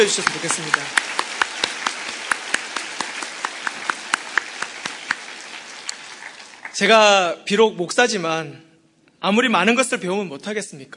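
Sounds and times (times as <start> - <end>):
speech: 0.0 - 1.2, 6.8 - 10.9
audience applauding: 0.0 - 7.1.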